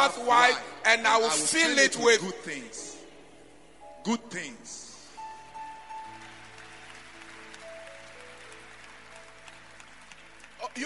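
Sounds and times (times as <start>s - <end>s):
speech: 0.1s - 2.9s, 4.0s - 4.8s, 10.6s - 10.8s
crowd clapping: 5.7s - 10.8s.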